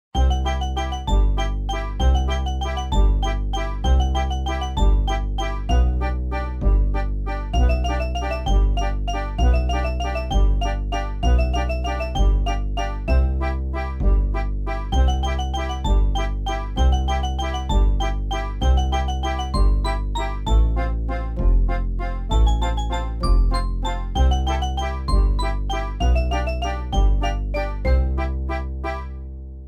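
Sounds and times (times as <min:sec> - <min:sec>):
game music: 0:00.2 - 0:29.2.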